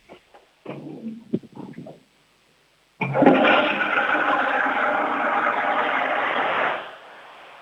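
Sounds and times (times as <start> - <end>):
toilet flush: 3.0 - 7.6.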